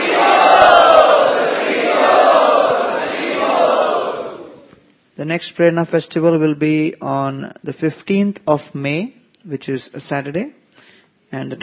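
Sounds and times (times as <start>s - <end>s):
audience loudly chanting in welcome: 0.0s - 4.7s
speech: 5.2s - 10.6s, 11.3s - 11.6s.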